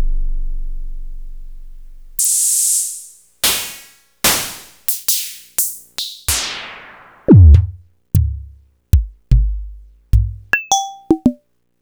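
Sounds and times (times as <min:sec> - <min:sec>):
Clavia Nord Modular synthesizer drum kit: 0:02.2 - 0:11.4.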